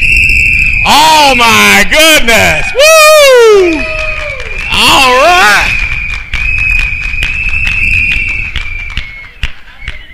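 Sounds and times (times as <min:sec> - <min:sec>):
audience blowing whistles: 0:00.0 - 0:10.1
people clapping: 0:00.7 - 0:10.1
speech: 0:00.9 - 0:03.9
people shouting: 0:00.9 - 0:05.7.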